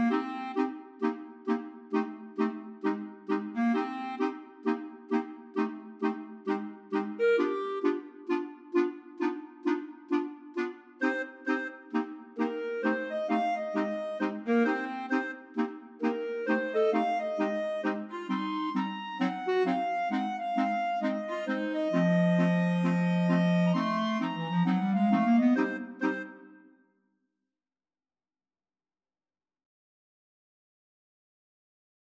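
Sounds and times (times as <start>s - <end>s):
clarinet choir playing: 0.0s - 0.7s, 1.9s - 26.5s.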